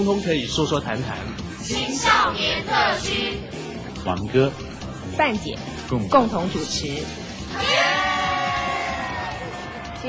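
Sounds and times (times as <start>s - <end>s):
speech: 0.0s - 7.8s
group cheering in a radio studio: 7.5s - 10.0s.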